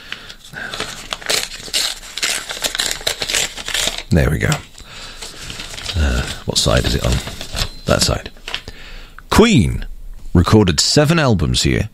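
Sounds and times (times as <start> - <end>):
envelope being opened: 0.0 - 7.8
speech: 4.1 - 4.7, 6.4 - 8.3, 9.4 - 11.9.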